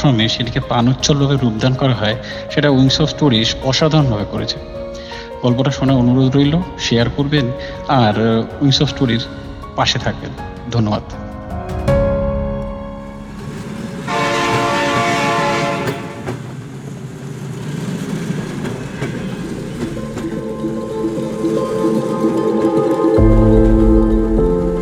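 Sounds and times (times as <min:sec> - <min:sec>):
speech: 0:00.0 - 0:11.2
train rumbling and rattling on a ride to Bongaon: 0:00.0 - 0:24.7
train horn blast: 0:14.1 - 0:16.5
deep low tone: 0:23.2 - 0:24.7.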